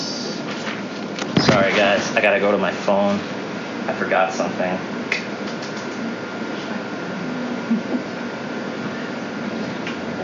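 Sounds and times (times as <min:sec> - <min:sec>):
printer printing a document: 0:00.0 - 0:10.2
speech: 0:02.0 - 0:04.9
ticks and clicks of paper feeding through printer: 0:05.1 - 0:06.0
laughter: 0:07.6 - 0:08.2.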